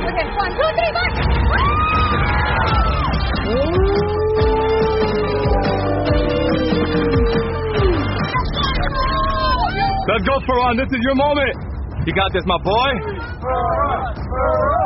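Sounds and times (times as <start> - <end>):
crowd cheering: 0.0 - 10.2
speech: 0.2 - 1.9, 10.1 - 13.8.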